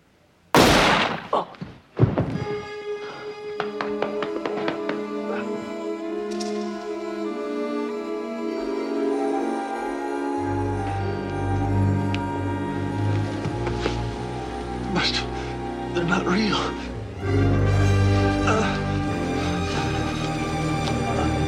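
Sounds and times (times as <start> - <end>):
gunman firing a gun in a Star Trek holodeck scene: 0.6 - 1.5
dramatic music: 2.4 - 21.4.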